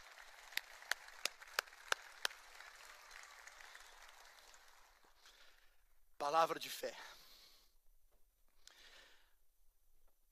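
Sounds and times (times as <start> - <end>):
audience applauding: 0.0 - 5.6
speech: 6.2 - 7.2.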